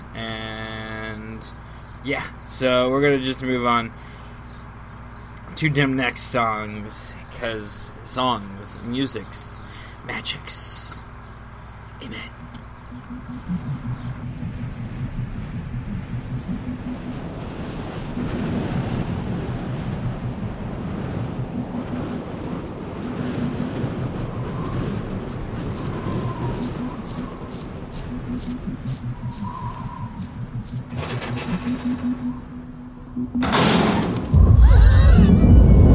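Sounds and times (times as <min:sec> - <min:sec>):
wind on a stormy night: 0:00.0 - 0:35.9
speech: 0:01.4 - 0:04.1, 0:05.6 - 0:10.9, 0:12.0 - 0:12.4
thunder on a stormy night: 0:16.2 - 0:27.5, 0:33.4 - 0:35.9.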